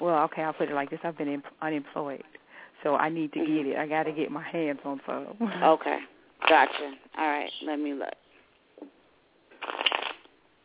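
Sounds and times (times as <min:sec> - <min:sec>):
speech: 0:00.2 - 0:08.2
shuffling tarot cards: 0:09.6 - 0:10.3.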